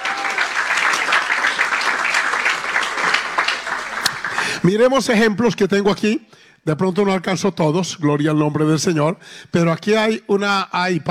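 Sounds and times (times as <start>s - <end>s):
audience applause: 0.0s - 4.6s
speech: 4.6s - 11.0s.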